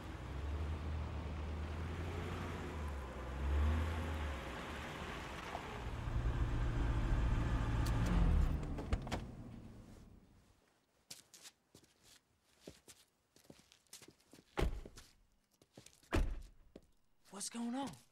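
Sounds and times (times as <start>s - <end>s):
sedan engine rumble rolling into a parking lot: 0.0s - 10.5s
speech: 17.4s - 18.1s.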